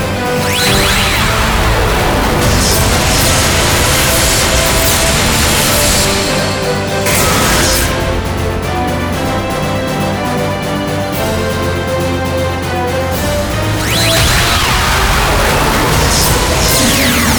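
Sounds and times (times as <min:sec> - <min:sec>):
pachinko slot machine reach sound effect: 0:00.1 - 0:17.3.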